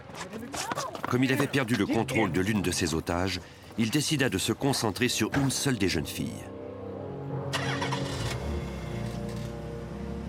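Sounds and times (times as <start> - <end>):
speech: 0.2 - 6.6
car engine starting: 7.4 - 10.2.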